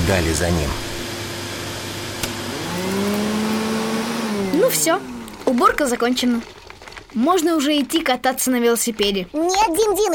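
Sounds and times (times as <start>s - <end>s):
vacuum cleaner running: 0.0s - 7.0s
speech: 0.1s - 1.0s, 4.5s - 10.1s.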